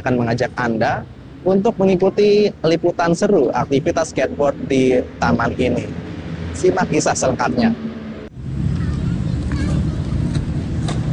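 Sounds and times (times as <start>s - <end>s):
speech: 0.0s - 8.0s
cars and motorcycles rumbling past on Jalan Jenderal Ahmad Yani: 0.0s - 11.1s
road traffic roar: 0.0s - 11.1s.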